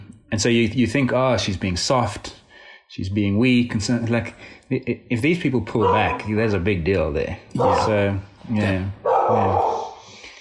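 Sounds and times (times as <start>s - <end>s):
speech: 0.3s - 9.8s
miniature dog barking: 5.8s - 6.4s, 7.6s - 8.0s, 9.0s - 10.0s.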